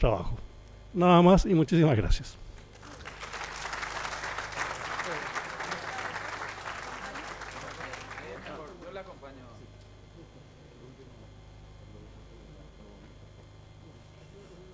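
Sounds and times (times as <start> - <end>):
speech: 0.0 - 2.4
audience applause: 2.7 - 9.0.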